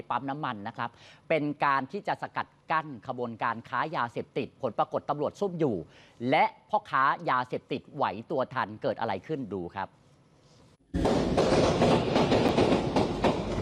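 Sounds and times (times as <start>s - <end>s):
speech: 0.0s - 10.0s
bursts of gunfire in a petrol station: 11.0s - 13.5s.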